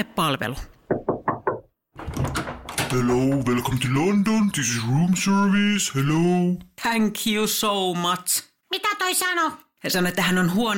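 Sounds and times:
speech: 0:00.0 - 0:00.7, 0:02.9 - 0:10.7
knocking on a hotel room door: 0:00.8 - 0:03.6.

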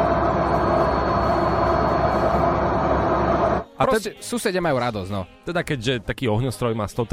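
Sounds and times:
loud washing machine running: 0:00.0 - 0:03.6
speech: 0:03.8 - 0:07.1.

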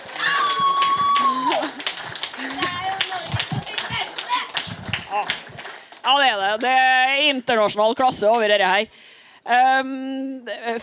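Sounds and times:
people cheering: 0:00.0 - 0:05.8
audience applause: 0:00.0 - 0:06.7
speech: 0:06.3 - 0:10.8.

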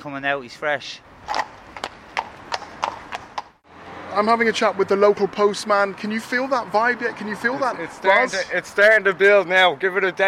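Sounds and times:
speech: 0:00.0 - 0:01.4, 0:04.2 - 0:10.2
horse clip-clopping along a Dublin street: 0:01.3 - 0:03.6.

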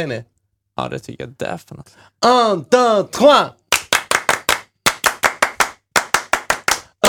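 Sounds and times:
speech: 0:00.0 - 0:03.6
French applause, rhythmic group hand clapping: 0:03.7 - 0:07.0.

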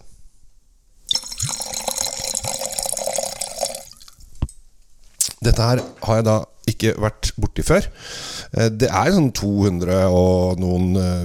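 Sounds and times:
white wine poured into a glass: 0:01.1 - 0:04.2
speech: 0:05.4 - 0:11.2.

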